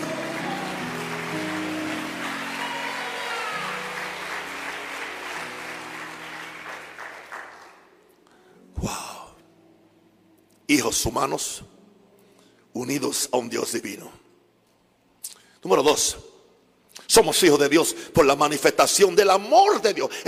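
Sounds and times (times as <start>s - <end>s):
applause: 0.0s - 8.1s
speech: 10.7s - 11.8s, 12.8s - 14.2s, 15.6s - 16.3s, 17.1s - 20.2s.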